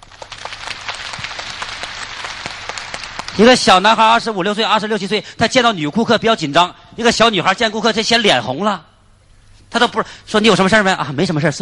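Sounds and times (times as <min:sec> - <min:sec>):
applause: 0:00.0 - 0:03.9
speech: 0:03.4 - 0:08.9, 0:09.7 - 0:11.6.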